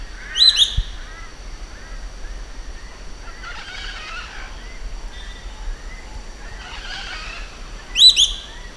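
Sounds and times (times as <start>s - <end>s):
Giant kingbird harsh rasping chattering calls: 0.1s - 8.7s.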